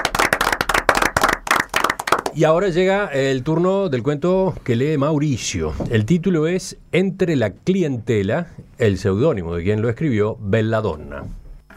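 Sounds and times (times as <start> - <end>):
audience applause: 0.0 - 2.4
speech: 2.4 - 11.4.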